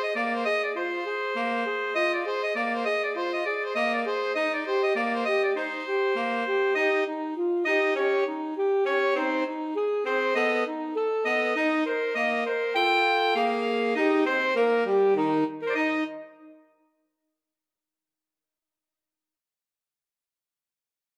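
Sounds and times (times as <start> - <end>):
two alto saxophones and tenor saxophone playing: 0.0 - 16.6.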